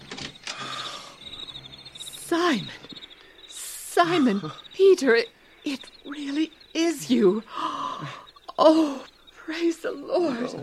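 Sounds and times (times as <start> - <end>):
door being unlocked and opened: 0.0 - 1.0
speech: 2.3 - 3.0, 4.0 - 10.6.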